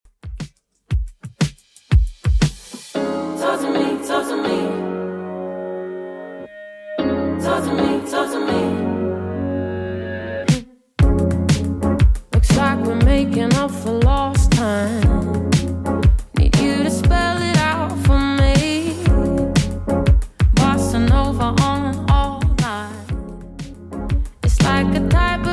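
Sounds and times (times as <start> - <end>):
Top 40 remix at 119 bpm: 0.2 - 25.5.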